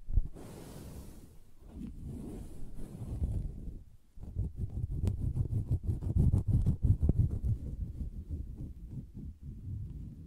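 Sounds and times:
fingers tapping and scratching on a soft fabric surface: 4.2 - 10.2.

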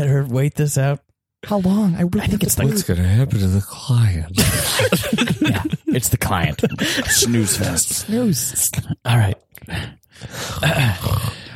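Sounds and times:
speech: 0.2 - 11.4
laughter: 4.4 - 8.1
snoring: 10.2 - 11.5.

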